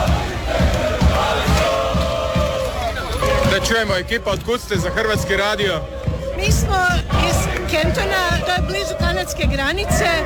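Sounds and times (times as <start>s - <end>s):
Croatian football supporters cheering and chanting at the Philadelphia Eagles' stadium: 0.0s - 10.2s
pounding beat: 0.0s - 10.2s
speech: 3.7s - 10.2s.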